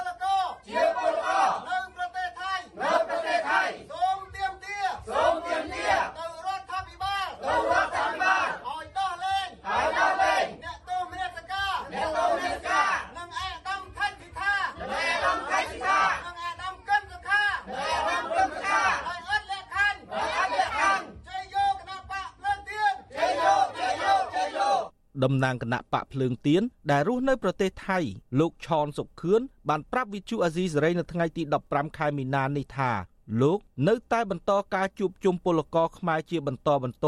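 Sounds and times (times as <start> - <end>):
crowd of supporters shouting and chanting at a Candlelight Party rally in Cambodia: 0.0 - 24.9
speech: 25.2 - 37.0.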